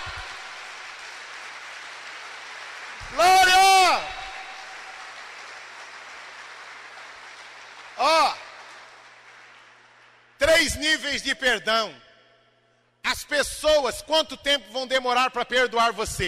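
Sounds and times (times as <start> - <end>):
applause: 0.0 - 11.2
speech: 3.1 - 3.3, 10.8 - 12.1, 13.1 - 16.2.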